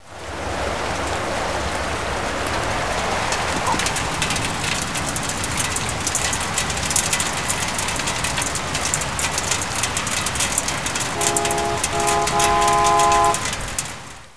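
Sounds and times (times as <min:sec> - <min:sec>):
rain: 0:00.0 - 0:14.3.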